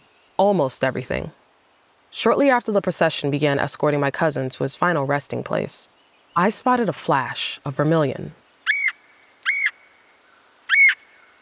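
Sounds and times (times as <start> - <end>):
speech: 0.4 - 1.4, 2.1 - 8.4
Red-headed Woodpecker calls: 8.6 - 11.2.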